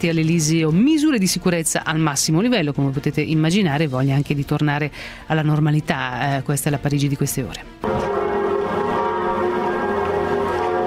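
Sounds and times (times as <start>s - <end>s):
speech: 0.0s - 8.1s
Notre Dame church bells tolling for the dead: 7.8s - 10.8s.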